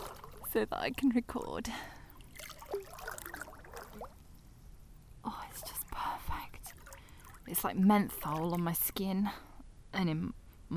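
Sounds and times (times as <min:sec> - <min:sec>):
water sloshing and splashing as someone swims one-handed: 0:00.0 - 0:04.6, 0:05.4 - 0:09.2
speech: 0:00.5 - 0:02.0, 0:05.2 - 0:05.7, 0:07.4 - 0:10.7.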